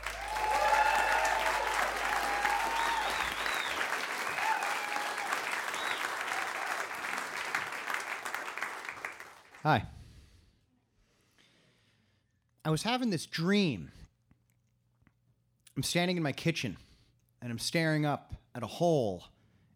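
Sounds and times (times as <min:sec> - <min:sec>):
audience whooping: 0:00.0 - 0:08.0
audience applause at a storytelling event: 0:00.0 - 0:09.6
speech: 0:09.7 - 0:10.0, 0:12.7 - 0:14.0, 0:15.8 - 0:19.3.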